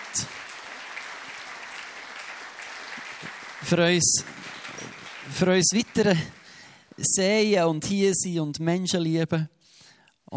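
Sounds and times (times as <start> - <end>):
audience applause: 0.0 - 7.0
speech: 3.6 - 4.5, 5.3 - 6.4, 7.0 - 9.6.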